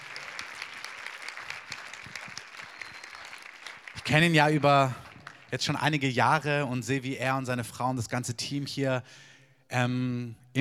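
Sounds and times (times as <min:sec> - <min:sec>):
audience applause: 0:00.0 - 0:05.6
speech: 0:04.0 - 0:10.5.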